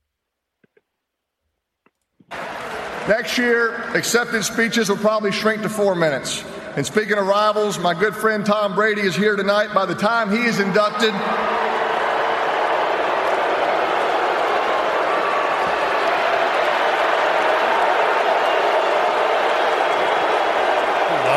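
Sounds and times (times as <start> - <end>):
crowd booing: 2.3 - 3.5, 10.8 - 21.3
speech: 3.1 - 11.8.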